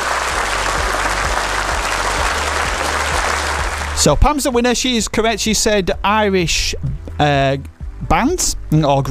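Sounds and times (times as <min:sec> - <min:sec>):
round of applause: 0:00.0 - 0:04.1
speech: 0:04.0 - 0:09.0.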